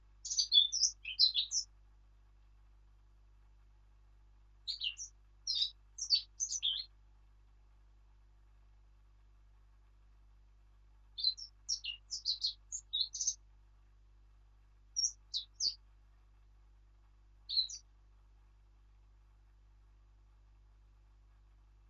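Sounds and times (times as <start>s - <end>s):
Eurasian blackcap Sylvia atricapilla warbling song: 0.2s - 1.7s, 4.7s - 6.9s, 11.2s - 13.4s, 15.0s - 15.8s, 17.5s - 17.8s.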